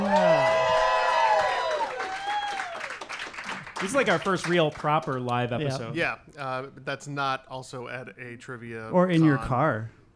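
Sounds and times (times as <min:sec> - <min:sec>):
live audience applause at the G-Man Tavern in Chicago: 0:00.0 - 0:05.3
speech: 0:03.8 - 0:10.0.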